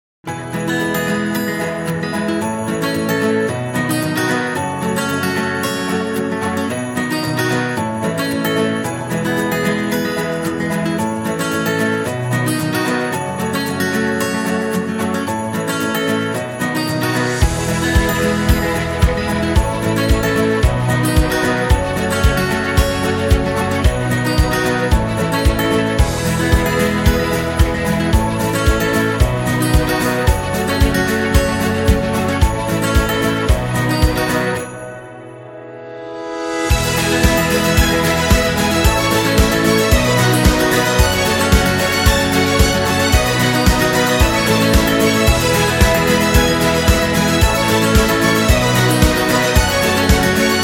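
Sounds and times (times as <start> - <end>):
happy holiday music: 0.2 - 50.6.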